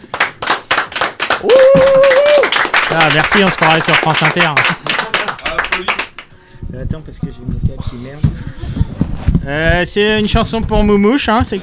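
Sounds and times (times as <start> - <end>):
audience clapping at a small concert: 0.0 - 6.4
speech: 2.9 - 4.8, 6.8 - 11.6.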